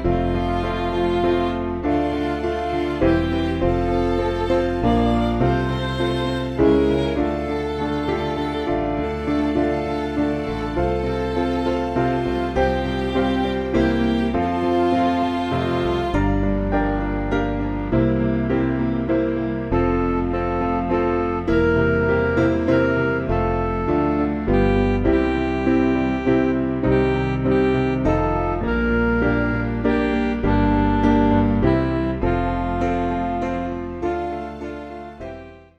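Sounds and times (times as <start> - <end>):
MIDI church backing music: 0.0 - 35.7.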